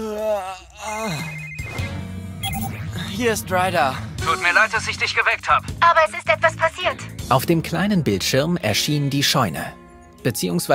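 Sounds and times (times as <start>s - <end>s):
communication device electronic ringtone: 1.2s - 2.9s
speech: 3.2s - 10.7s.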